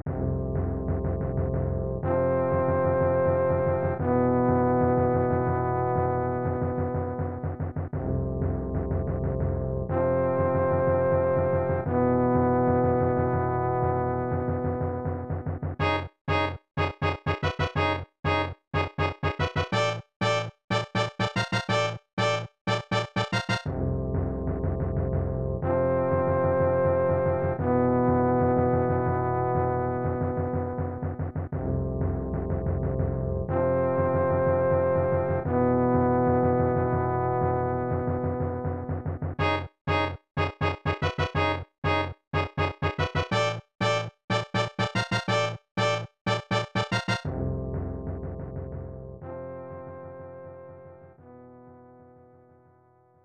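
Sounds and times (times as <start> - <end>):
airship background music: 0.1 - 51.6.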